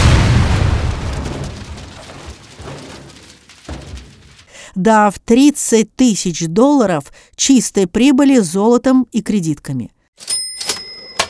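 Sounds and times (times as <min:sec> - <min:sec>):
faint thud: 0:00.0 - 0:04.6
dynamite explosion blowing open a safe: 0:00.0 - 0:04.7
speech: 0:04.8 - 0:10.8.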